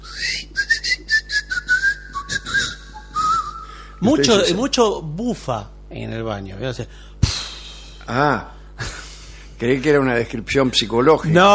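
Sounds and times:
person whistling a quick bouncy tune: 0.0 - 3.9
speech: 4.0 - 7.2, 8.1 - 8.9, 9.6 - 11.5.

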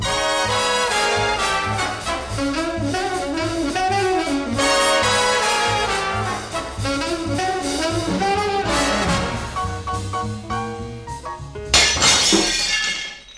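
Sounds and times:
lively band music: 0.0 - 11.8
glass shattering: 11.7 - 13.3.

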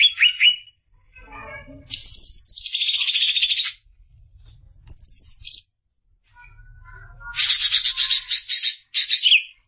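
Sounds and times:
greater green leafbird chattering song: 1.9 - 3.8, 4.5 - 5.7, 7.4 - 9.6.

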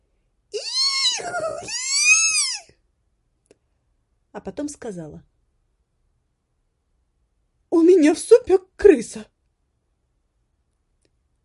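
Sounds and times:
human voice imitating a cry between a horse's whinny and a piglet's squeal: 0.6 - 2.8
speech: 4.4 - 5.3, 8.0 - 9.4.

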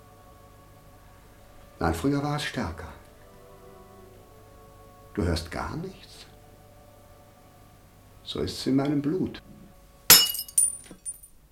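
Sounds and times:
speech: 1.8 - 3.0, 5.2 - 6.3, 8.3 - 9.6
drinking glass clinking: 10.1 - 11.3
drinking glass crashing: 10.1 - 11.3
glass fragments tinkling: 10.1 - 11.3.

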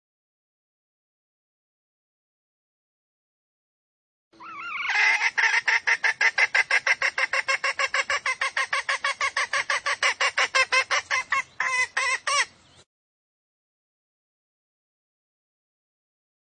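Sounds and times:
female junglefowl clucking: 4.4 - 12.6.

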